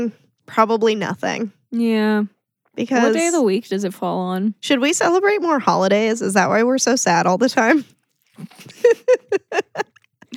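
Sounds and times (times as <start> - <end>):
speech: 0.0 - 9.9
chewing: 7.9 - 8.9
laughter: 8.4 - 10.3.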